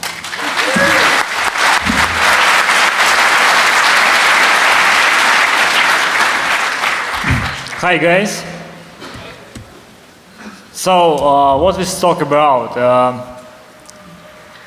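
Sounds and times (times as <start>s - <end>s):
audience applause welcoming a speaker to a talk on penetration testing: 0.0s - 8.0s
speech: 7.8s - 8.5s, 10.8s - 13.4s.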